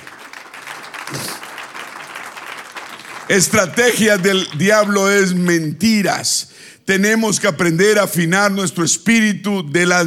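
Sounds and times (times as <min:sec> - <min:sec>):
audience applause: 0:00.0 - 0:05.0
speech: 0:03.3 - 0:10.0.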